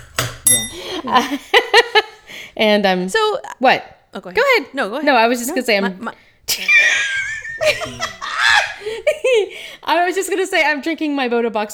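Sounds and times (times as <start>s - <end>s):
small hand bell ringing: 0.5s - 0.9s
speech: 0.5s - 11.7s
laughter: 6.5s - 9.5s.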